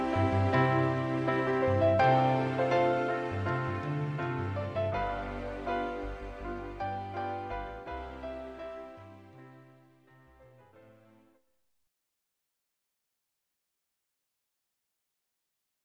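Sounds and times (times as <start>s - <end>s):
anthem music short version: 0.0s - 10.4s.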